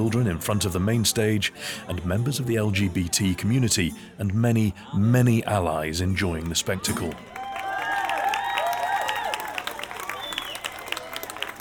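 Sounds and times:
speech: 0.0 - 7.4
crowd cheering at pride festival: 6.4 - 11.6
steady clapping: 6.4 - 11.6
high whoops: 7.3 - 11.4.

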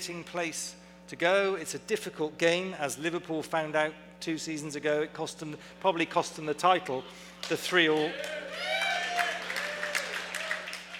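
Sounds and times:
speech: 0.0 - 8.8
people clapping: 7.4 - 10.9.

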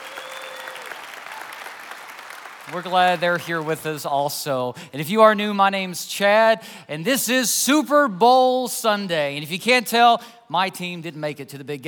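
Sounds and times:
audience clapping hands: 0.0 - 4.2
speech: 2.7 - 11.8.

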